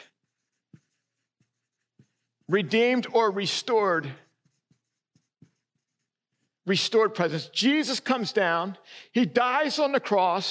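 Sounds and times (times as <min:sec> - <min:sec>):
drawing strokes on a board: 0:00.0 - 0:07.7
speech: 0:02.5 - 0:04.2, 0:06.7 - 0:10.4.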